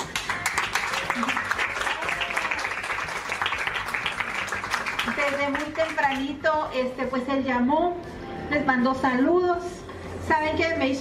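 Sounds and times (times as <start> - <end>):
audience clapping: 0.0 - 6.3
speech: 5.5 - 10.9.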